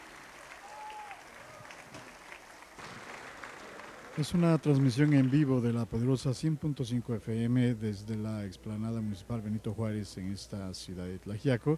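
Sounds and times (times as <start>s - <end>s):
audience applause at live concert: 0.0s - 5.8s
speech: 4.2s - 11.7s.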